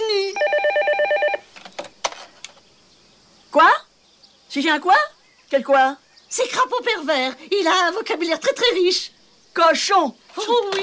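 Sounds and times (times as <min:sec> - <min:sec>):
telephone ringing: 0:00.4 - 0:01.5
speech: 0:04.6 - 0:10.8.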